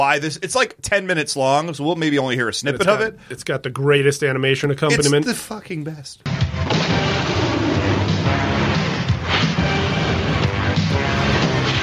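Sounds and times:
speech: 0.0s - 7.5s
theme song with booming low brass: 6.2s - 11.8s.

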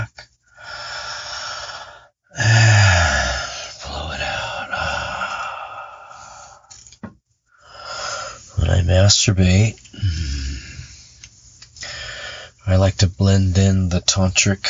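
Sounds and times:
deep breathing during a guided breathing exercise: 0.4s - 8.6s, 9.9s - 12.6s
speech: 9.0s - 10.5s, 12.7s - 14.6s.

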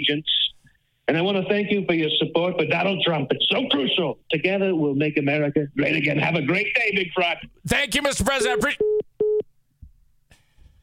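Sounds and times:
speech: 0.0s - 0.5s, 1.1s - 8.9s
phone tone after call hang-up: 8.5s - 9.4s.

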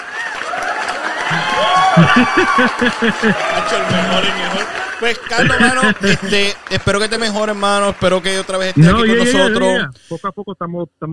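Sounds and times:
group clapping: 0.0s - 10.0s
rhythmic laughter or cheering: 1.2s - 7.0s
speech: 1.6s - 11.1s.

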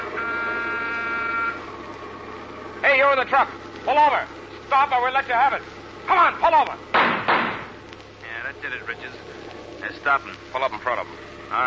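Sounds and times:
car horn blasting: 0.0s - 1.7s
speech: 3.0s - 7.1s, 8.6s - 11.6s.

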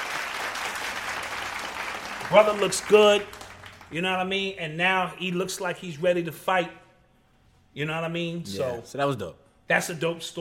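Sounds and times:
audience applause: 0.0s - 4.0s
speech: 2.3s - 6.8s, 7.7s - 10.3s.

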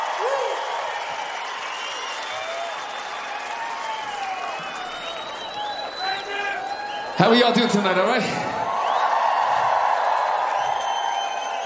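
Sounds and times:
large concert crowd roaring and cheering: 0.0s - 11.6s
high whistles: 1.3s - 7.3s, 10.5s - 11.6s
speech: 7.2s - 8.5s.

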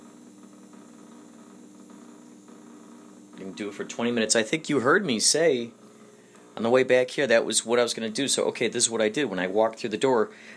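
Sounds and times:
ozonator machine running: 0.0s - 10.5s
speech: 3.4s - 5.8s, 6.6s - 10.5s.

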